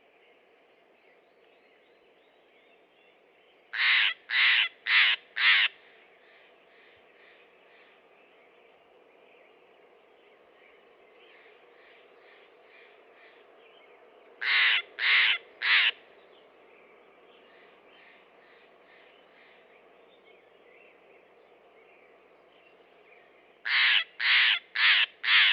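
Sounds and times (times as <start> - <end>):
Steller's jay calling harshly in Western North America: 3.8 - 5.8, 14.4 - 16.0, 23.6 - 25.5.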